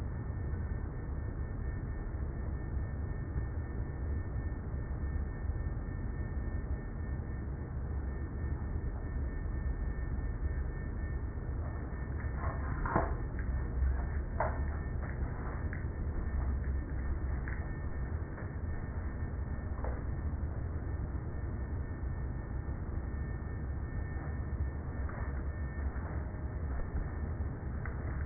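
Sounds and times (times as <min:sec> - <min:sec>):
4000 Hz whine: 0:00.0 - 0:28.2.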